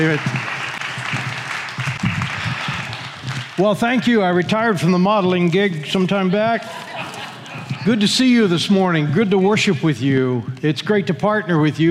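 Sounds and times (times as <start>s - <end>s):
speech: 0.0s - 0.5s, 3.6s - 6.9s, 7.8s - 11.8s
audience applause: 0.0s - 4.0s
laughter: 6.0s - 9.7s.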